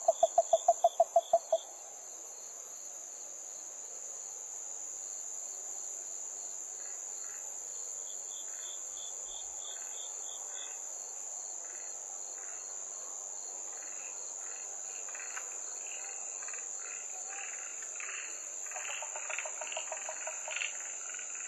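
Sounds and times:
Yaeyama harabuti gaeru frog: 0:00.0 - 0:01.7, 0:18.7 - 0:20.8.

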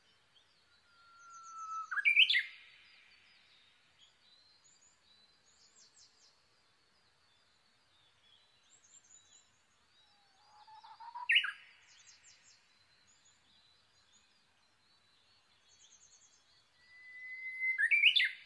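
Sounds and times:
Japanese bush warbler song, long whistle sliding into warbled flourish: 0:00.9 - 0:02.7, 0:10.1 - 0:13.3, 0:15.8 - 0:18.4.

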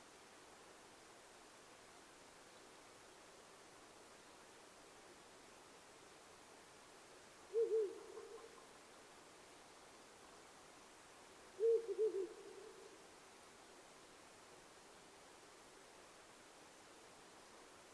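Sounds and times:
owl giving low soft hoots: 0:07.5 - 0:08.7, 0:11.6 - 0:13.0.

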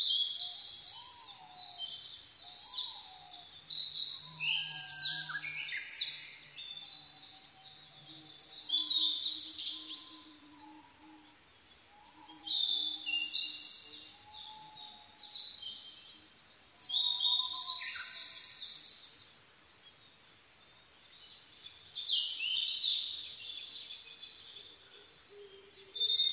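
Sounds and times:
blue-and-white flycatcher singing whistled phrases: 0:00.0 - 0:19.1
busy chorus of other birds: 0:00.0 - 0:26.3.

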